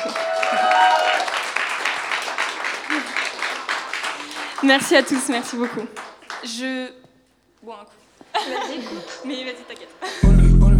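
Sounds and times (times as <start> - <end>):
audience applause: 0.0 - 6.6, 8.4 - 10.3
speech: 4.6 - 7.0, 7.6 - 10.5
laughter: 8.2 - 10.6.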